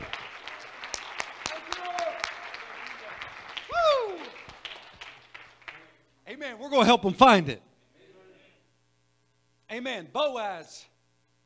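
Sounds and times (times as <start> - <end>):
audience clapping hands: 0.0 - 6.0
speech: 6.7 - 7.7, 10.0 - 10.9.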